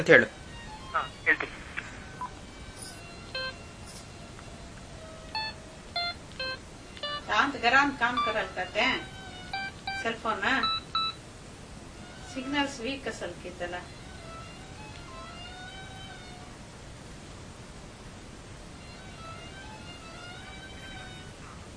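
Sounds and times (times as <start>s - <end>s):
speech: 0.0s - 1.6s, 7.5s - 9.1s, 10.0s - 10.8s, 12.4s - 14.0s
telephone keypad tones while placing a call: 5.4s - 7.3s, 9.5s - 11.2s.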